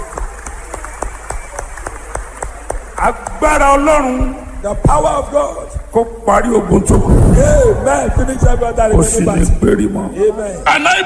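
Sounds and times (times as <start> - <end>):
audience clapping: 0.0 - 3.8
speech: 3.0 - 11.0.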